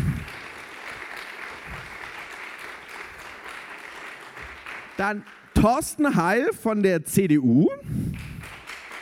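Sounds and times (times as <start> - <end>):
audience applause: 0.0 - 5.5, 8.1 - 8.9
speech: 5.0 - 8.0.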